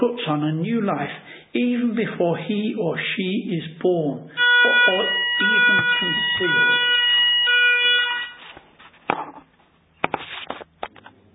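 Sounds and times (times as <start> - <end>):
speech: 0.0 - 7.0
church alarm buzzing electronic tone: 4.4 - 8.5
sharp knocks and clatters: 8.8 - 11.2.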